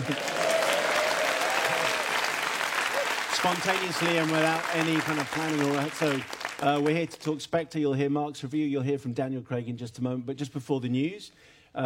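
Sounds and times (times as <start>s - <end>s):
studio audience applause: 0.0s - 7.3s
speech: 3.4s - 11.8s.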